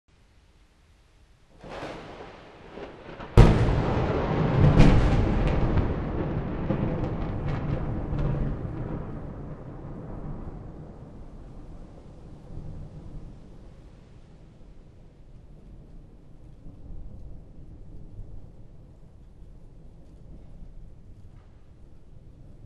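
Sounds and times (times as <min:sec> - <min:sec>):
thunderbolt: 0:01.6 - 0:13.8.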